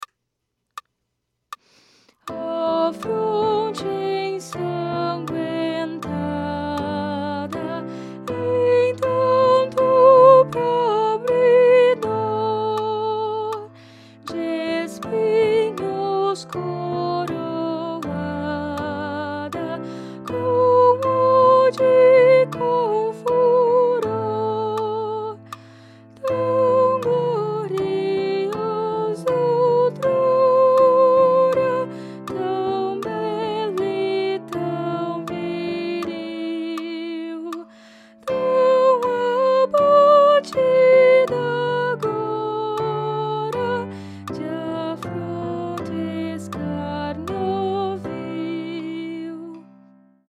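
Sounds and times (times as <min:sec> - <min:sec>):
soprano singing: 0:02.3 - 0:50.0.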